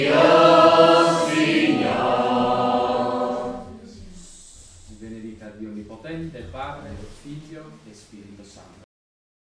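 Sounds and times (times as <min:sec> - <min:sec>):
song: 0:00.0 - 0:04.0.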